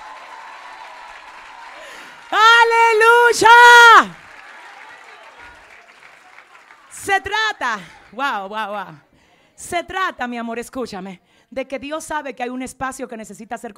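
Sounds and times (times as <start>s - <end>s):
loud audience applause: 0.0s - 8.2s
speech: 2.6s - 4.2s, 7.2s - 13.7s.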